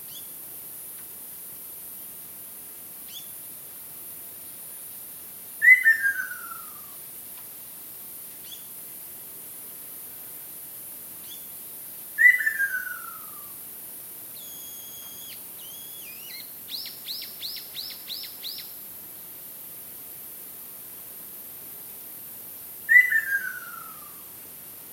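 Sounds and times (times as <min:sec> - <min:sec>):
Ruddy kingfisher descending whistled trill: 0:05.6 - 0:06.7, 0:12.2 - 0:13.4, 0:14.4 - 0:18.6, 0:22.9 - 0:24.2.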